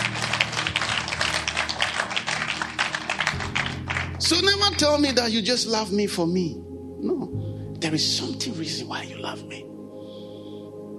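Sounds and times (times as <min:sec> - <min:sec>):
audience clapping hands: 0:00.0 - 0:05.2
speech: 0:04.2 - 0:09.7.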